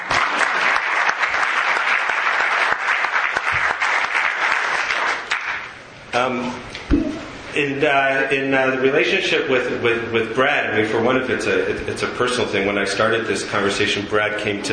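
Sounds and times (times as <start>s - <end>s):
audience applause: 0.0s - 5.8s
speech: 6.2s - 7.0s, 7.6s - 14.7s.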